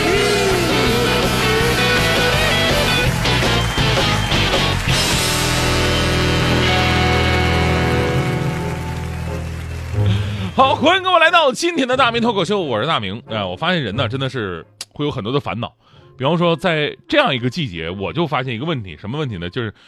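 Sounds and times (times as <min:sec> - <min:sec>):
applause: 0:00.6 - 0:11.3
speech: 0:10.8 - 0:19.8.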